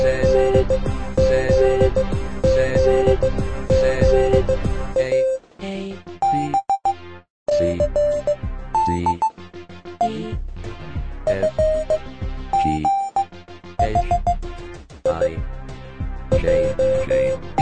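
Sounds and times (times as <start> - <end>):
Morse code telegraphy song: 0.0 - 5.4, 6.2 - 9.3, 10.0 - 10.4, 11.3 - 14.4, 15.0 - 15.4, 16.3 - 17.6.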